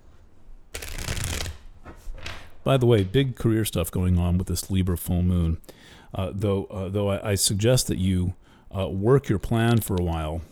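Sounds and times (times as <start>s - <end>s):
tarot cards being shuffled in a riffle: 0.8s - 1.7s
speech: 2.6s - 10.5s.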